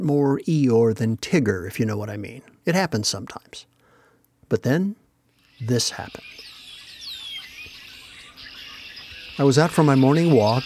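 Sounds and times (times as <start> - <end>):
speech: 0.0 - 3.7, 4.5 - 5.0, 5.6 - 6.5, 9.4 - 10.6
red-winged blackbirds calling from a bare tree: 5.4 - 10.6.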